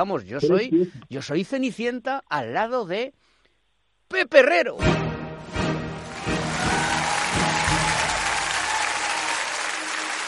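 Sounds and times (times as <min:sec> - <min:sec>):
speech: 0:00.0 - 0:03.3, 0:04.1 - 0:05.1
audience applause: 0:06.0 - 0:10.2.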